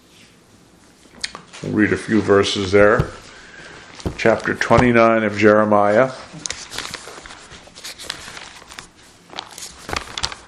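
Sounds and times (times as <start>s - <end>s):
speech: 1.6s - 3.2s, 4.2s - 6.2s
many Bible pages turning: 1.7s - 5.5s, 6.4s - 10.4s.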